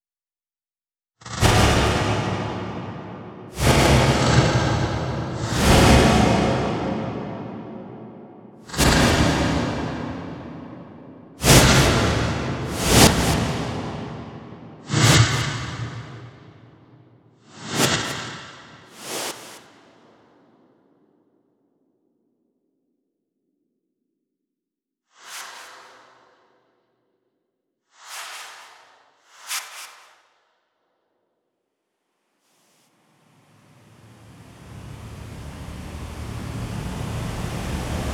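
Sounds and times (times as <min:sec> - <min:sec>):
noise with Ultraverb reverb: 0:01.2 - 0:19.3, 0:31.8 - 0:38.1.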